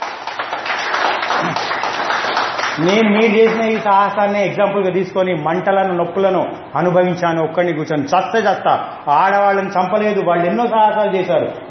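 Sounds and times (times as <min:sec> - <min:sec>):
women in a gathering clapping: 0:00.0 - 0:03.9
speech: 0:02.8 - 0:11.6.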